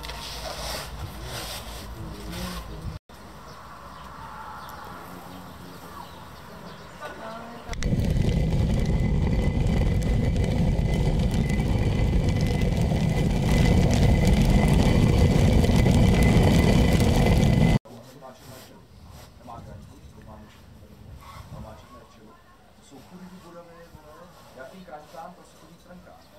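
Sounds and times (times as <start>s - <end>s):
stone mill grinding: 7.7s - 17.8s.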